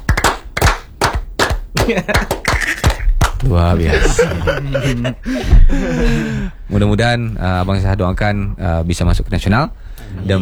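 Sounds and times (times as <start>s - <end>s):
hand claps: 0.0s - 3.6s
laughter: 1.7s - 6.5s
speech: 1.9s - 2.8s, 3.4s - 10.3s.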